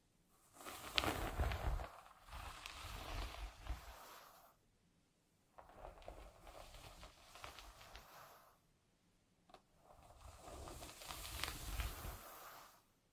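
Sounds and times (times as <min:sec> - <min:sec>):
hair gently combed with bristles: 0:00.5 - 0:04.6, 0:05.6 - 0:08.6, 0:09.9 - 0:12.9.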